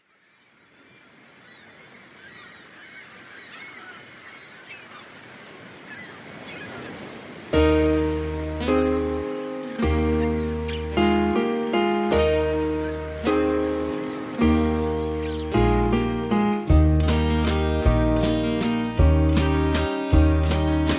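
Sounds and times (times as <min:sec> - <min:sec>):
backing track without backing vocals: 0:07.6 - 0:20.9.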